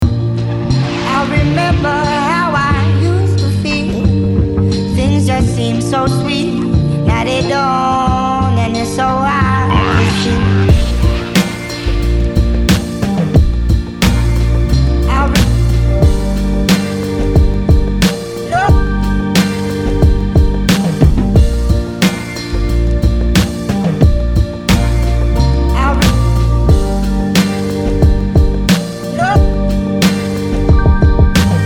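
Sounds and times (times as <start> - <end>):
instrumental music: 0.0 - 31.6.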